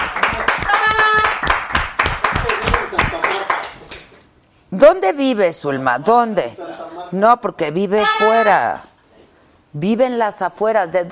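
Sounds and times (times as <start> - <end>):
applause: 0.0 - 4.1
overlapping excited voices: 0.0 - 4.1
speech: 4.8 - 8.9, 9.7 - 11.1.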